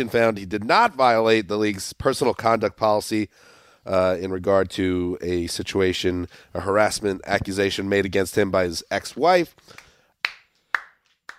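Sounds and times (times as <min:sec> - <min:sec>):
speech: 0:00.0 - 0:09.8
one person clapping hands: 0:09.7 - 0:11.3.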